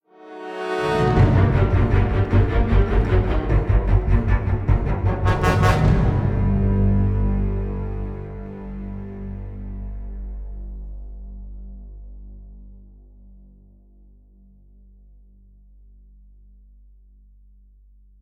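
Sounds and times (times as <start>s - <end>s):
string instrument: 0.0s - 14.0s.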